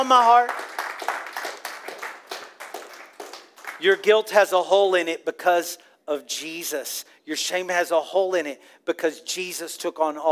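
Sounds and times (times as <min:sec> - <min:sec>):
speech: 0:00.0 - 0:00.7, 0:03.8 - 0:10.2
audience clapping: 0:00.0 - 0:04.2.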